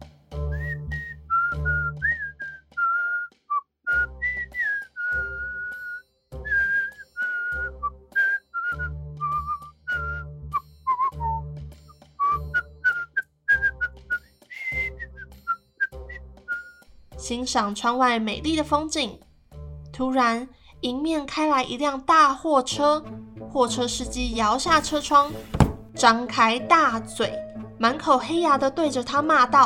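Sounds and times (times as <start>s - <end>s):
whistling a tune: 0.5s - 16.9s
speech: 17.3s - 19.2s, 20.0s - 29.6s.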